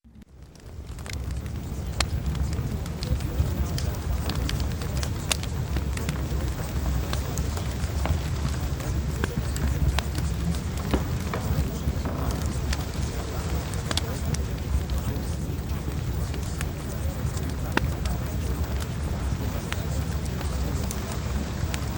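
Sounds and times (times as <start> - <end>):
fireplace: 0.1 - 21.9.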